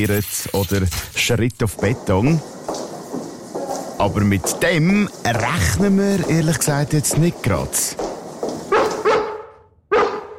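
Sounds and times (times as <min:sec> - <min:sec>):
speech: 0:00.0 - 0:02.5, 0:04.0 - 0:08.1
female dog barking at a prison in Lenzburg, Aargau: 0:08.7 - 0:10.3.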